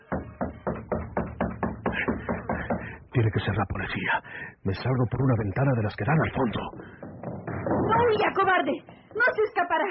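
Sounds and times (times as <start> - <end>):
knocking at a door: 0.0 - 3.2, 6.1 - 9.5
speech: 3.2 - 7.0, 7.7 - 9.8.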